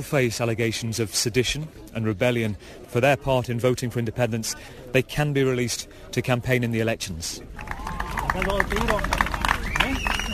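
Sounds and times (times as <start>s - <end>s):
speech: 0.0s - 7.7s, 8.4s - 9.3s
supporters cheering outside a prison gate: 7.5s - 10.3s
supporters clapping rhythmically: 7.6s - 10.3s.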